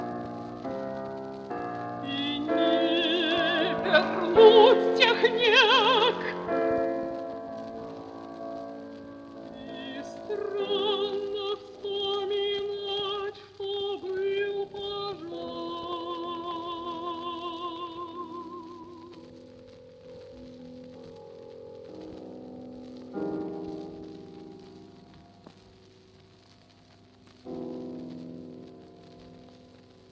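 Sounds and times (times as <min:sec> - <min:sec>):
soprano singing: 0:01.7 - 0:07.8, 0:09.3 - 0:19.5.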